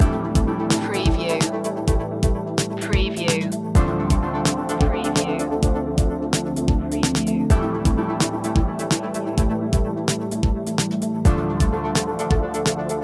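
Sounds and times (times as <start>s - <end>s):
chill broken beats loop: 0.0s - 13.0s.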